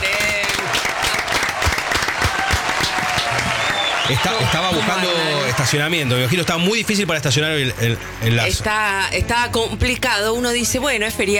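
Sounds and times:
audience applause from a sizable audience: 0.0 - 7.6
speech: 4.1 - 11.3.

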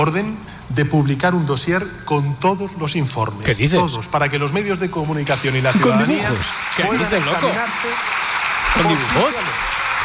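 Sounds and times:
speech: 0.0 - 9.8
crowd applause: 5.5 - 10.0.

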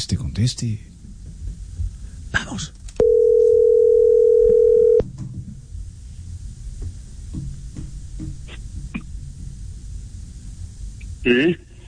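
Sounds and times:
speech: 0.0 - 0.9, 2.6 - 2.8, 11.3 - 11.6
telephone dial tone: 3.0 - 5.0.

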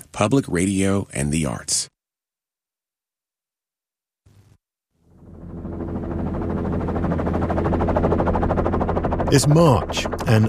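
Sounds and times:
speech: 0.2 - 1.9, 9.3 - 10.4
helicopter engine roaring at liftoff: 5.0 - 10.4.

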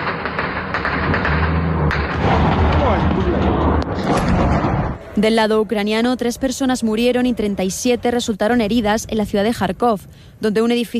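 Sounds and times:
continuous loud rumbling roar of shelling in the war in Ukraine: 0.0 - 5.1
heavy deep artillery booms in the war in Ukraine: 0.4 - 5.2
speech: 5.2 - 10.9.

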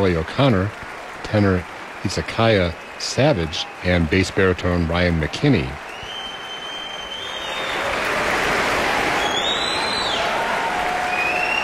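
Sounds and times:
speech: 0.0 - 5.8
audience applauding: 0.0 - 11.6
audience whistling: 2.2 - 4.5, 5.8 - 11.6.

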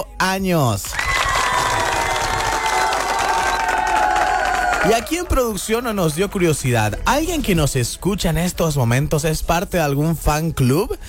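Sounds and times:
speech: 0.0 - 1.0, 4.8 - 11.0
crowd applause: 0.9 - 6.9.

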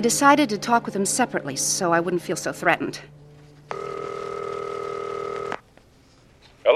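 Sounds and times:
speech: 0.0 - 3.2
telephone ringing before being answered: 3.7 - 5.6.

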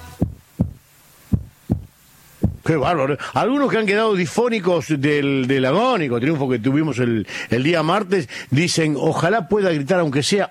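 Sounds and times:
hearts beating: 0.0 - 2.7
speech: 2.7 - 10.5.

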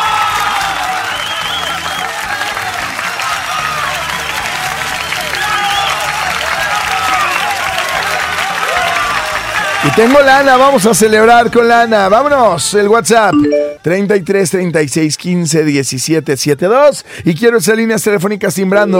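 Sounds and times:
crowd shouting and cheering: 0.0 - 12.4
speech: 10.0 - 18.9.

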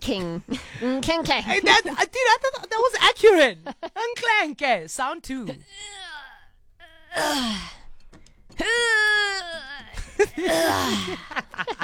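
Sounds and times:
speech: 0.1 - 6.0, 7.1 - 7.8, 8.6 - 11.8
voice imitating a weak person straining at weightlifting: 5.6 - 7.9, 8.6 - 11.5
short breathy gasps: 7.2 - 8.0.

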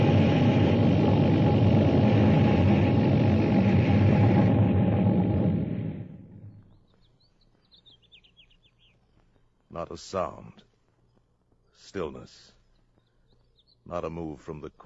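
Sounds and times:
flying saucer descending and landing with rumbling roar: 0.0 - 6.7
speech: 9.8 - 10.7, 11.8 - 12.6, 13.9 - 14.8.

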